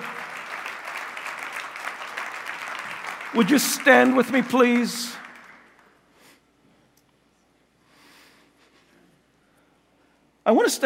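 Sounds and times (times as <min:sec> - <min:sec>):
audience applauding: 0:00.0 - 0:06.0
speech: 0:03.3 - 0:05.2, 0:10.5 - 0:10.8.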